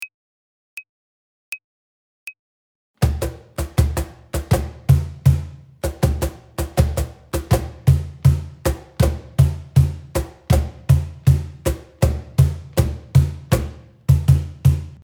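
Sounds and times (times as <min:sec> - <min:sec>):
samba music intro: 0:03.0 - 0:15.0.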